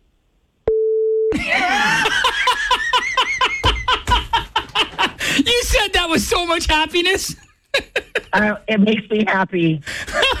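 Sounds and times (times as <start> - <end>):
censor bleep: 0.7 - 1.3
laughter: 1.3 - 5.5, 7.7 - 8.6, 10.0 - 10.3
speech: 6.0 - 9.9.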